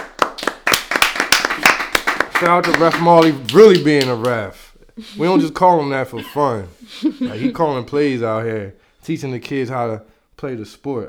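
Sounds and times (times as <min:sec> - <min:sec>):
audience clapping: 0:00.0 - 0:04.5
speech: 0:02.4 - 0:11.0
laughter: 0:05.0 - 0:07.8.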